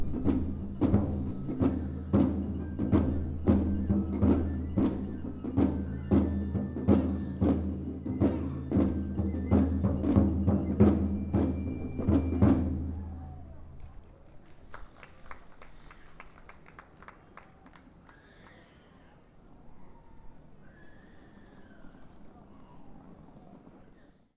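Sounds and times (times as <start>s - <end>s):
drumming: 0.0s - 13.8s.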